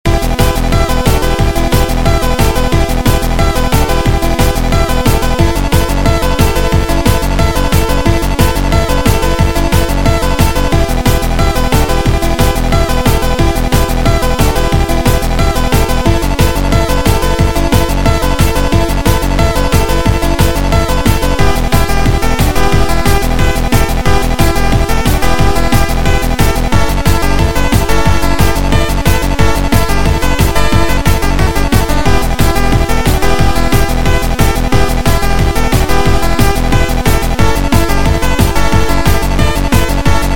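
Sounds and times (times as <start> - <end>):
music: 0.0 - 40.3.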